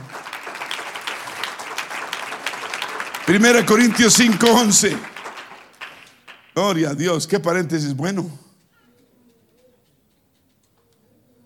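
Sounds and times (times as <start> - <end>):
audience applause: 0.0 - 6.8
speech: 3.3 - 5.2, 6.6 - 8.4.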